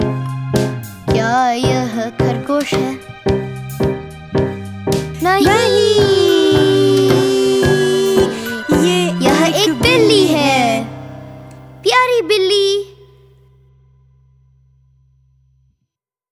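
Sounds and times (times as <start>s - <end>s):
Hindi song: 1.0s - 13.2s.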